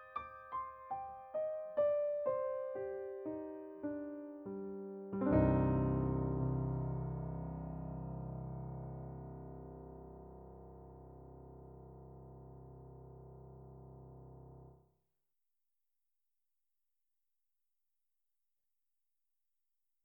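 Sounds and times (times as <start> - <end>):
Kawai Novus N5 piano sound: 0.0 - 14.8.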